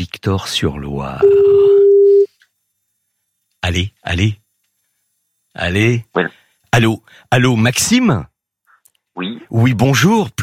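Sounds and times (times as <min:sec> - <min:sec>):
speech: 0:00.0 - 0:01.7, 0:03.7 - 0:04.4, 0:05.6 - 0:08.3, 0:09.2 - 0:10.4
telephone tone as a call is placed to Saint-Victor-sur-Loire: 0:01.2 - 0:02.3.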